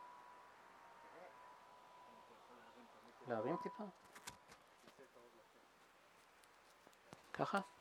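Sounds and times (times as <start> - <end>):
repeated electronic beeping: 3.3 - 3.9
speech: 3.3 - 4.2, 7.4 - 7.7.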